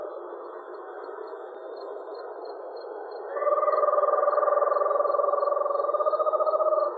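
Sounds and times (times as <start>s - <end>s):
Eastern screech owl delivering a low pulsed trill: 3.3s - 6.9s.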